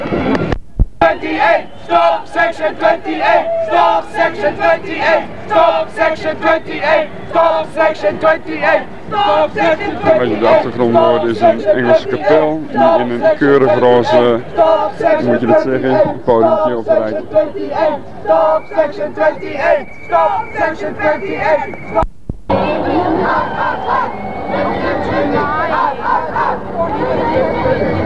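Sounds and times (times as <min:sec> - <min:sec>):
large crowd jeering and shouting: 0:01.0 - 0:28.0
whistles: 0:01.4 - 0:02.2, 0:18.3 - 0:22.0, 0:23.0 - 0:25.6.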